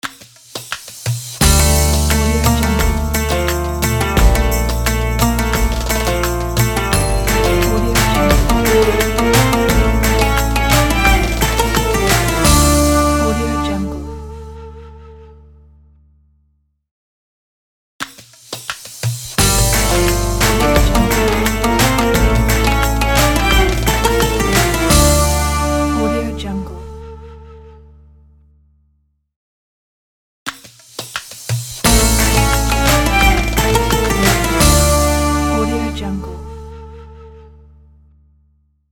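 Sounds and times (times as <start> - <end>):
Arabic opener logo music: 1.4 - 14.3, 19.4 - 26.4, 31.8 - 36.2.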